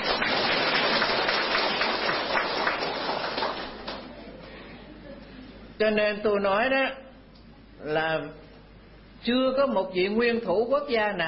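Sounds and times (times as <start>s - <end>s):
audience applause: 0.0s - 4.1s
speech: 5.8s - 7.0s, 7.8s - 8.4s, 9.2s - 11.2s.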